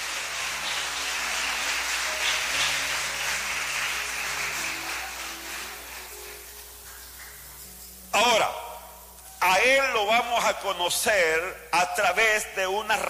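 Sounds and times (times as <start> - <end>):
audience applause: 0.0 - 7.7
speech: 10.1 - 13.0.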